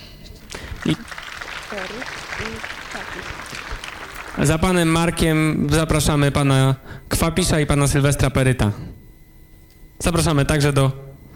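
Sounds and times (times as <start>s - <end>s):
audience applause: 0.4s - 5.2s
speech: 0.8s - 9.0s, 10.0s - 11.0s.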